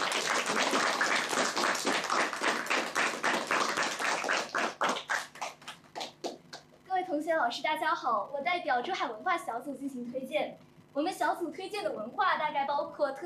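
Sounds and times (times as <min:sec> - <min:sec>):
audience applause: 0:00.0 - 0:06.4
speech: 0:07.4 - 0:13.2.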